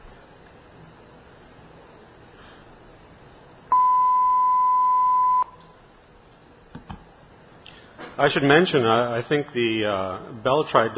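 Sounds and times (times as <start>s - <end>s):
telephone network signaling tone: 3.7s - 5.5s
speech: 8.2s - 10.9s.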